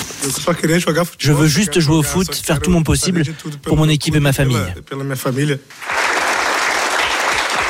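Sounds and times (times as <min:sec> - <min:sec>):
speech: 0:00.4 - 0:05.9
journalists applauding in press room: 0:05.7 - 0:07.6.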